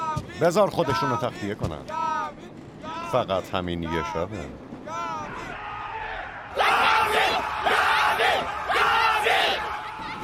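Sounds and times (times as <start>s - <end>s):
speech: 0.4s - 2.0s, 3.1s - 4.6s
crowd cheering and yelling: 5.1s - 10.2s.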